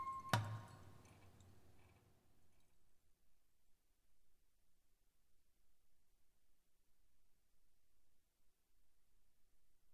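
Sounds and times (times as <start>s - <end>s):
ancient hymn: 0.0s - 1.2s.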